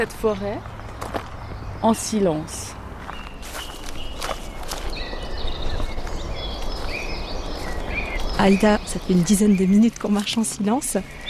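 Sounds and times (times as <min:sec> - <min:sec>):
speech: 0:00.0 - 0:00.8, 0:01.8 - 0:02.8, 0:08.4 - 0:11.2
crunching steps underfoot: 0:00.0 - 0:11.2
thin high bird calls chirping: 0:00.0 - 0:11.2
leaves rustling in woodland: 0:03.0 - 0:11.2.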